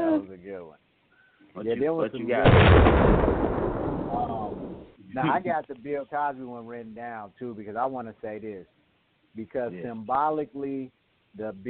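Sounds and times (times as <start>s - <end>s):
speech: 0.2s - 3.5s, 4.2s - 11.6s
bomb explosion sound effect: 2.4s - 4.9s.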